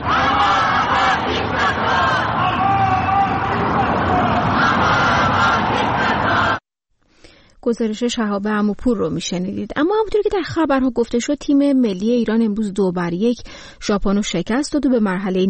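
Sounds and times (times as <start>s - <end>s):
Iranian protesters chanting slogans outside the Islamic Republic's embassy: 0.0s - 6.6s
speech: 7.7s - 15.4s.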